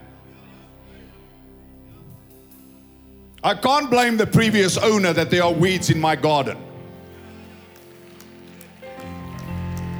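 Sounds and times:
speech: 0:03.4 - 0:06.7
faint scattered audience clapping: 0:07.0 - 0:09.9.

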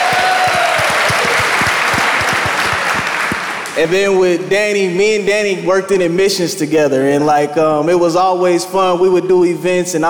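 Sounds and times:
round of applause: 0:00.0 - 0:03.8
speech: 0:03.8 - 0:10.0.

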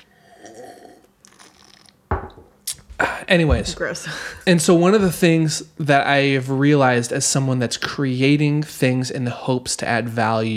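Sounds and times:
person sipping a Guinness: 0:00.0 - 0:02.0
speech: 0:03.2 - 0:10.5.

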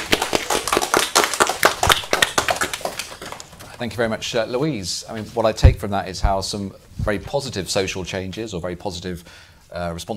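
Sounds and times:
audience applause: 0:00.0 - 0:03.5
speech: 0:03.8 - 0:10.1.

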